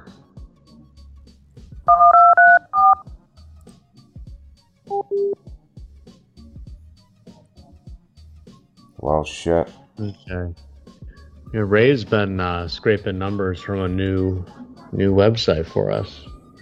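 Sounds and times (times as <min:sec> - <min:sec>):
speech: 0:01.9 - 0:02.1, 0:09.1 - 0:10.7, 0:11.5 - 0:16.3
telephone keypad tones dialing a remote access code: 0:01.9 - 0:03.0, 0:04.9 - 0:05.4.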